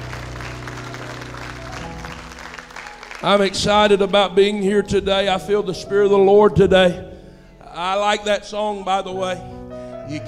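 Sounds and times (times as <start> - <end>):
audience hand clap of praise: 0.0 - 4.2
speech: 3.2 - 7.1, 7.8 - 9.5, 10.1 - 10.2.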